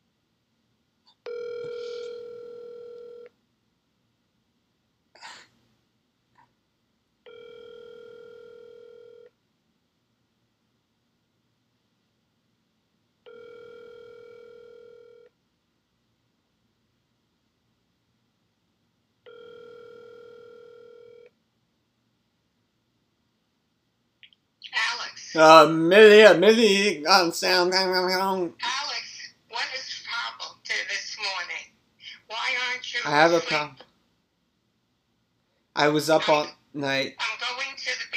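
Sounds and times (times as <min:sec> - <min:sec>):
telephone line tone after a call is hung up: 0:01.2 - 0:03.3, 0:07.3 - 0:09.3, 0:13.2 - 0:15.3, 0:19.2 - 0:21.3
noise bursts: 0:24.6 - 0:33.8
speech: 0:25.3 - 0:28.8, 0:33.0 - 0:33.8, 0:35.8 - 0:37.2.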